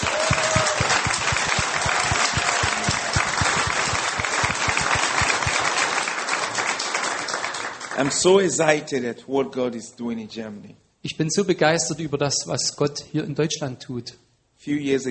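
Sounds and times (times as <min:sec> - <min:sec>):
congregation clapping rhythmically for Jesus at a church service in Germany: 0:00.0 - 0:08.5
speech: 0:08.0 - 0:15.0.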